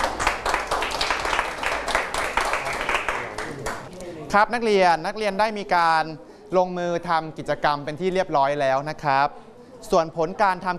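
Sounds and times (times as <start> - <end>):
students clapping: 0.0 - 3.9
speech: 4.3 - 10.7.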